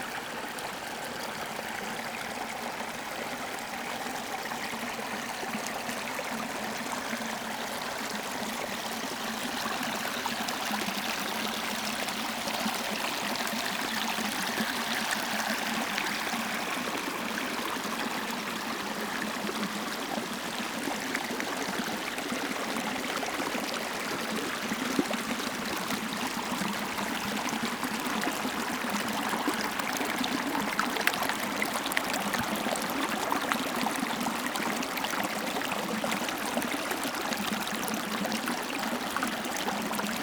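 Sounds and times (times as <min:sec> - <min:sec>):
small stream at Linhope Spout in Northumberland UK: 0:00.0 - 0:40.2.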